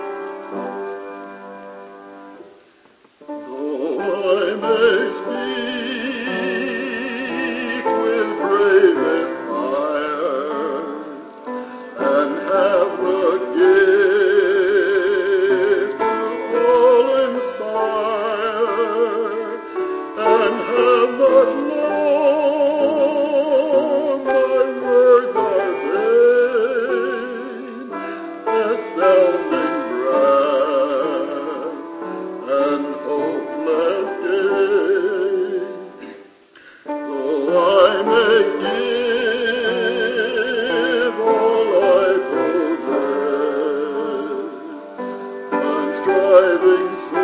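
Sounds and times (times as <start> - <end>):
choir singing anthems with solo: 3.4 - 36.1, 36.9 - 47.2.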